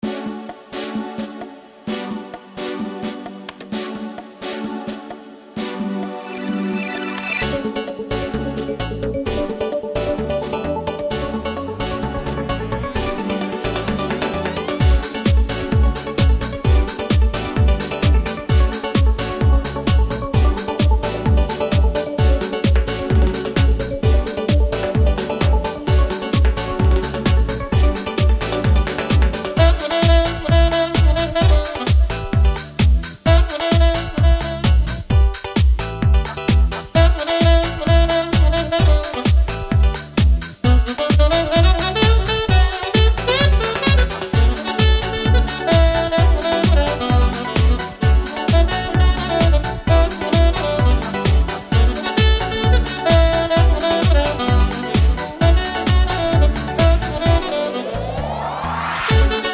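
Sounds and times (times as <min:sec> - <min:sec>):
joyful saxophone: 0:00.0 - 0:59.5.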